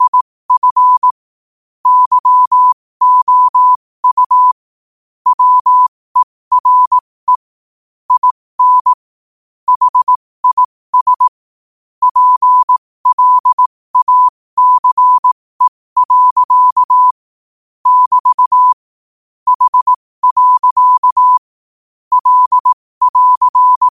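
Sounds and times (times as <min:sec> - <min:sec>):
morse code at 5 wpm: 0:00.0 - 0:01.1, 0:01.8 - 0:04.6, 0:05.3 - 0:07.5, 0:08.1 - 0:09.1, 0:09.7 - 0:11.3, 0:12.0 - 0:17.2, 0:17.8 - 0:18.8, 0:19.5 - 0:21.5, 0:22.1 - 0:23.8.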